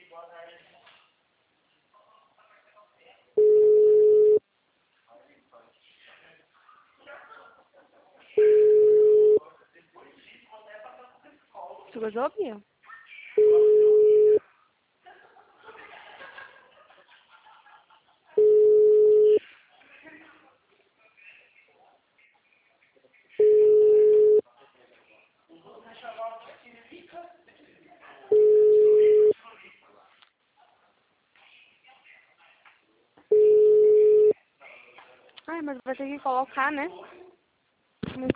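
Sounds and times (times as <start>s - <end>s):
telephone ringback tone: 3.4s - 4.4s, 8.4s - 9.4s, 13.4s - 14.4s, 18.4s - 19.4s, 23.4s - 24.4s, 28.3s - 29.3s, 33.3s - 34.3s
speech: 12.0s - 12.7s, 35.8s - 37.2s
laughter: 15.0s - 18.6s.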